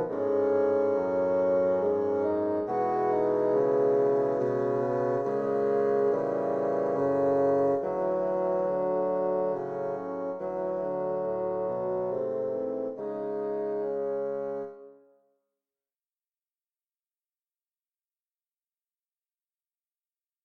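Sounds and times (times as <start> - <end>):
bassoon quartet playing a minuet: 0.0 - 14.9.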